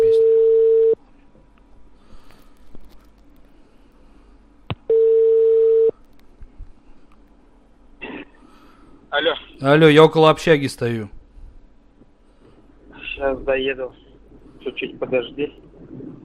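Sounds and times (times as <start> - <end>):
ringback tone of an outgoing telephone call: 0.0 - 1.0, 4.9 - 5.9
speech: 9.2 - 11.2, 13.5 - 14.0, 14.6 - 16.2.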